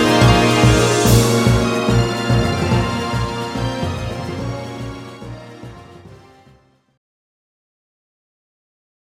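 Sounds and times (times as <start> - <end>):
great drum: 0.0 - 5.0.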